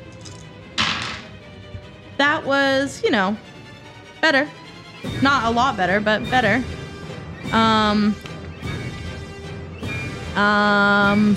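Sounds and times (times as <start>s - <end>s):
dice rolling: 0.0s - 1.3s
speech: 2.2s - 3.5s, 4.2s - 6.8s, 7.4s - 8.3s, 10.4s - 11.3s.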